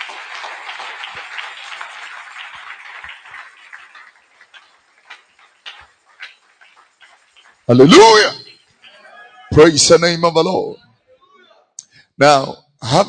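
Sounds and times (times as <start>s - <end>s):
audience clapping: 0.0s - 9.1s
speech: 7.7s - 8.4s, 9.6s - 10.8s, 12.2s - 13.0s.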